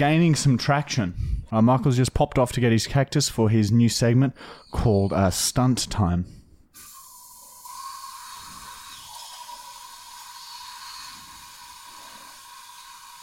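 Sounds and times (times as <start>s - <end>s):
speech: 0.0s - 6.9s
hairspray aerosol hiss: 7.7s - 13.2s.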